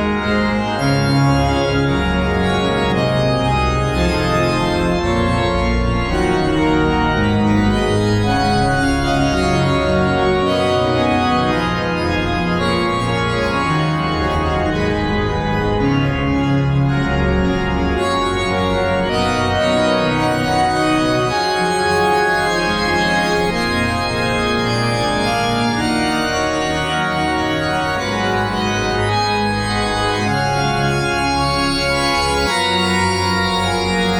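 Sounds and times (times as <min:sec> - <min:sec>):
cathedral church organ: 0:00.0 - 0:34.1.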